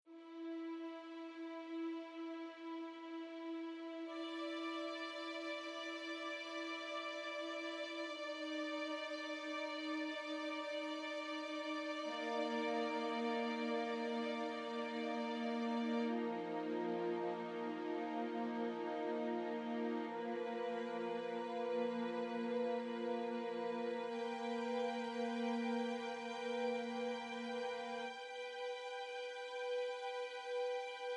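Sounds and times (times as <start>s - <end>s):
string instruments: 0.0s - 31.1s.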